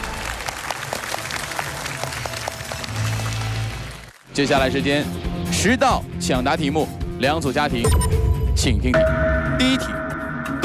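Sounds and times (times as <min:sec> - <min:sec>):
audience applause: 0:00.0 - 0:04.3
speech: 0:04.4 - 0:10.0.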